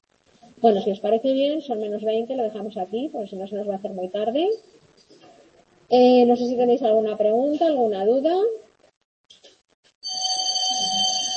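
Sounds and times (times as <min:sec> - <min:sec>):
speech: 0:00.6 - 0:04.7, 0:05.9 - 0:08.6
electronic doorbell buzzer: 0:10.0 - 0:11.3.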